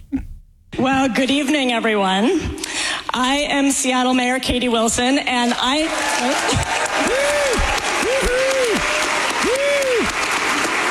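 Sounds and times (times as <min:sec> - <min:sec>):
speech: 0:00.8 - 0:02.6, 0:03.2 - 0:06.7
large audience applause: 0:05.8 - 0:10.9
crowd whooping: 0:05.9 - 0:10.9.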